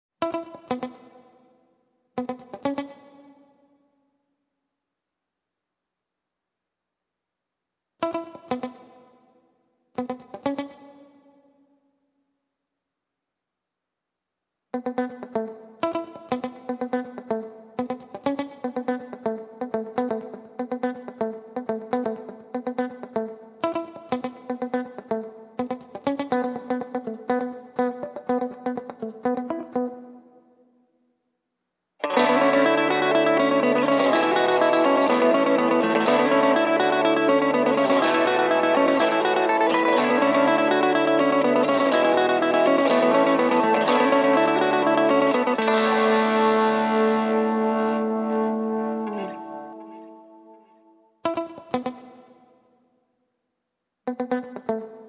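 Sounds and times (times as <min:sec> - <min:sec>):
electric guitars: 0:00.2 - 0:01.3, 0:02.2 - 0:03.4, 0:08.0 - 0:09.1, 0:10.0 - 0:11.2, 0:14.8 - 0:30.2, 0:32.0 - 0:52.4, 0:54.1 - 0:55.0.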